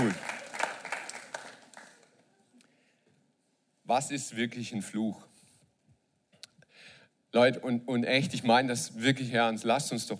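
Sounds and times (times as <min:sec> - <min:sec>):
speech: 0:00.0 - 0:00.3, 0:03.9 - 0:05.3, 0:07.3 - 0:10.1
hand claps: 0:00.0 - 0:02.0.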